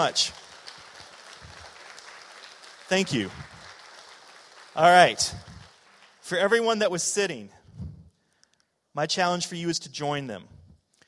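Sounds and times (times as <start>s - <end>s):
speech: 0.0s - 0.4s, 2.9s - 3.5s, 4.8s - 5.6s, 6.3s - 7.6s, 9.0s - 10.5s
crowd applauding: 0.0s - 6.8s.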